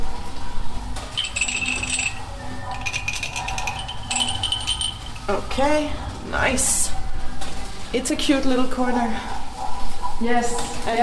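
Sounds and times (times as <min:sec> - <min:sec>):
glass objects clinking: 0:01.1 - 0:05.5
bright high ringing glass tones: 0:01.2 - 0:05.4
speech: 0:05.3 - 0:06.9, 0:07.9 - 0:09.4, 0:10.2 - 0:11.0.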